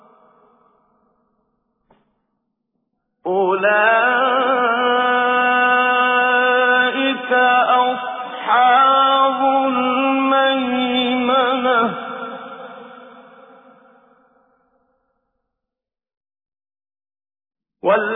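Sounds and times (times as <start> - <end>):
person reciting Quran with tajweed: 3.3 - 13.0, 17.8 - 18.1.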